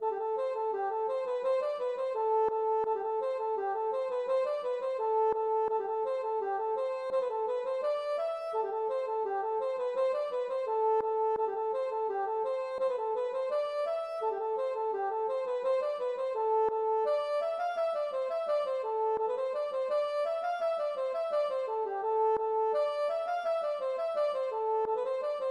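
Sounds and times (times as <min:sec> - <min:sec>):
gavotte: 0:00.0 - 0:25.4.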